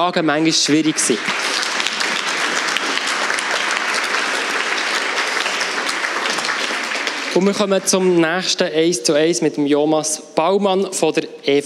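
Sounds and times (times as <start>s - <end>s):
speech: 0.0s - 1.7s, 7.4s - 11.6s
audience applause: 0.5s - 8.2s.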